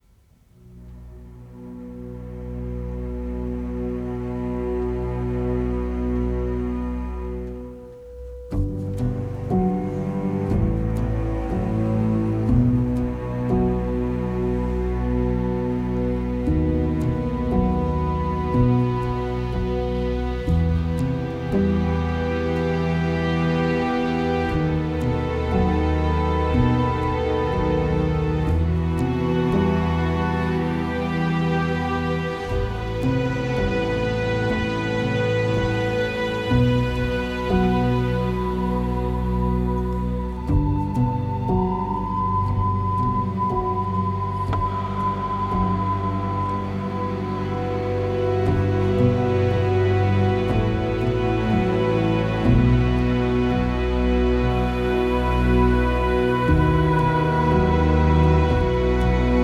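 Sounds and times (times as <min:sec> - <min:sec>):
string ensemble piece: 0:00.5 - 0:59.4.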